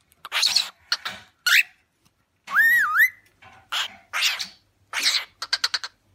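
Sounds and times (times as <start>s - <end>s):
pet parrot squawks and chatter: 0.1s - 6.1s
pet parrot whistling: 2.5s - 3.2s.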